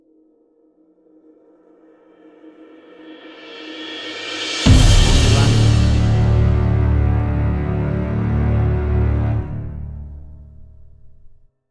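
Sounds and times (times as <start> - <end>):
short battle music stinger: 4.7 - 11.4.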